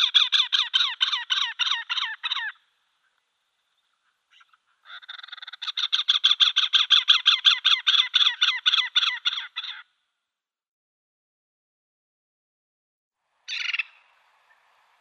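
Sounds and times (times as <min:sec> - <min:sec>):
great spotted cuckoo chattering: 0:00.0 - 0:03.2, 0:04.0 - 0:09.8, 0:13.5 - 0:14.6.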